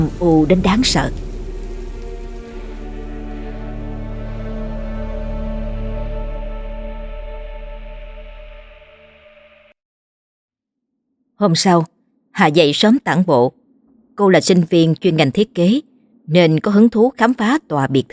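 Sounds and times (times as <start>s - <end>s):
speech: 0.0s - 1.2s, 11.4s - 13.6s, 14.2s - 18.1s
heavy pouring rain: 0.0s - 6.4s.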